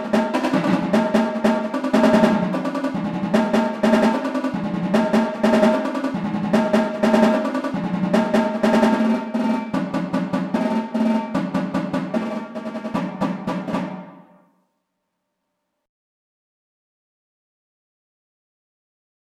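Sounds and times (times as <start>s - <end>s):
drums: 0.0s - 14.4s.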